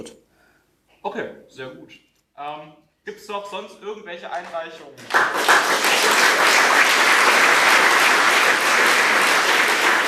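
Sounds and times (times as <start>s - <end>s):
speech: 1.0s - 7.1s
audience applause: 5.0s - 10.0s.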